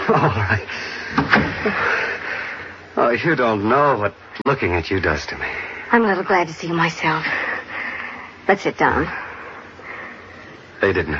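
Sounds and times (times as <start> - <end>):
steady noisy background: 0.0 - 11.1
speech: 0.1 - 1.9, 3.0 - 7.5, 8.5 - 9.2, 10.8 - 11.1
door being closed: 1.1 - 1.8.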